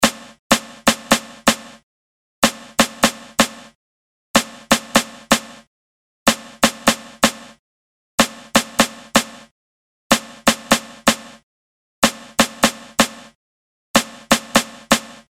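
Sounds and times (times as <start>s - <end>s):
snappy snare drum: 0.0s - 1.8s, 2.4s - 3.8s, 4.4s - 5.7s, 6.3s - 7.6s, 8.2s - 9.5s, 10.1s - 11.4s, 12.0s - 13.4s, 14.0s - 15.3s.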